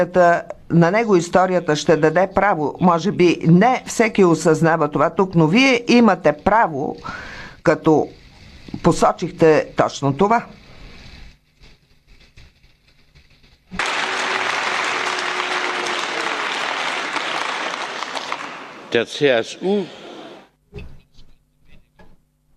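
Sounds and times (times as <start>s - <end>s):
speech: 0.0s - 10.6s, 18.9s - 20.0s, 20.7s - 20.9s
applause in parliament: 13.8s - 19.0s.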